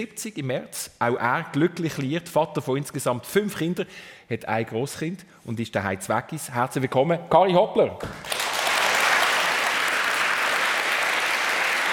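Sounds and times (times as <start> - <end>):
speech: 0.0 - 8.4
audience applause: 8.2 - 11.9.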